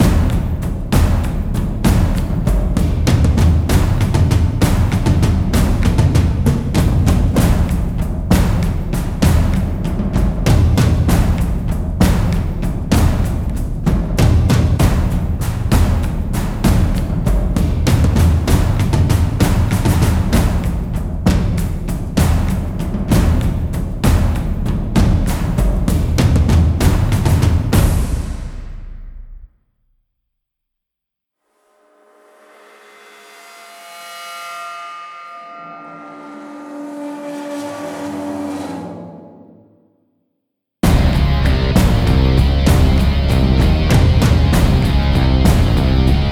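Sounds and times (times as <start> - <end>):
suspense drums: 0.0 - 29.5, 40.8 - 46.3.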